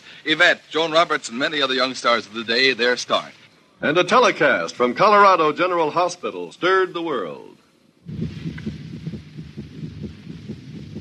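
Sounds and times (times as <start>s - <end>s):
speech: 0.2s - 8.5s
fetal heartbeat of an unborn child: 8.0s - 10.9s
whooshing hum: 8.0s - 10.9s.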